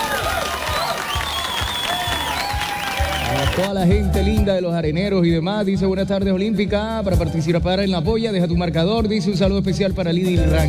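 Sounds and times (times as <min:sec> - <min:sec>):
applause: 0:00.0 - 0:03.8
speech: 0:03.6 - 0:10.6.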